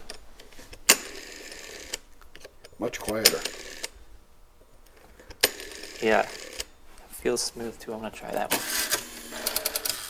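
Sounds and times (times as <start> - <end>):
rotary telephone dial with governor motor whirring: 0.8 - 4.0, 5.2 - 6.7, 8.4 - 10.0
speech: 2.8 - 3.7, 6.0 - 6.4, 7.2 - 8.9.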